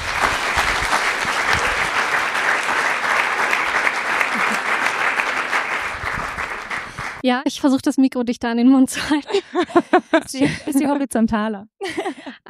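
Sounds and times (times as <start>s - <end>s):
audience applause: 0.0s - 7.2s
laughter: 0.4s - 6.9s, 9.0s - 11.1s, 11.8s - 12.4s
speech: 7.2s - 12.2s.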